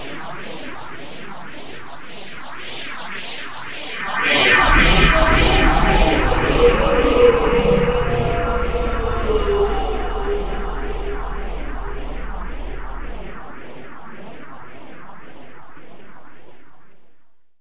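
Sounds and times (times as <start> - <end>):
space scream: 4.2 - 14.5.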